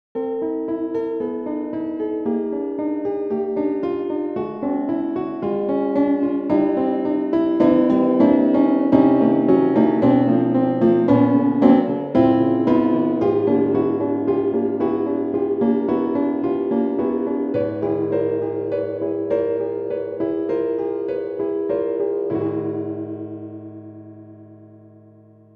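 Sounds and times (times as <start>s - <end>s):
concert grand piano: 0.2s - 25.5s.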